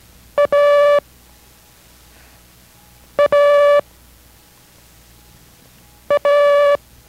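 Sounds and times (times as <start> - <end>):
Morse code letter A beeps in a code lesson: 0.4 - 1.0, 3.2 - 3.8, 6.1 - 6.8.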